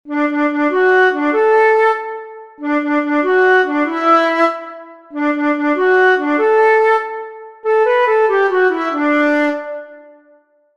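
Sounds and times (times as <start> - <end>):
flute solos: 0.1 - 10.3.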